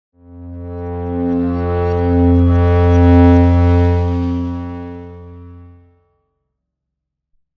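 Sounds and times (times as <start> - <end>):
tone: 0.2 - 5.8.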